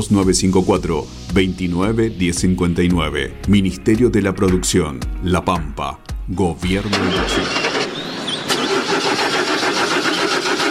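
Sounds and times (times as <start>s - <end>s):
speech: 0.0s - 7.6s
generator engine cranking and starting: 6.6s - 10.6s.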